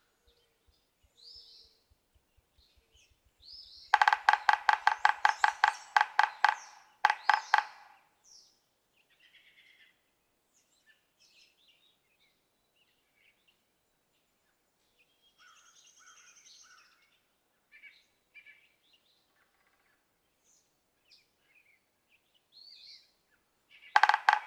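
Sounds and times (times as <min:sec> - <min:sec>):
yellow-bellied sapsucker nasal mewing notes: 0:03.9 - 0:08.0, 0:24.0 - 0:24.4.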